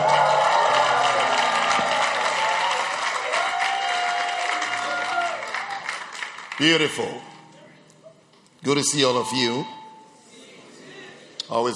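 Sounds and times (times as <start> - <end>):
audience clapping: 0.0 - 7.3
speech: 6.6 - 7.3, 8.6 - 9.8, 11.5 - 11.7.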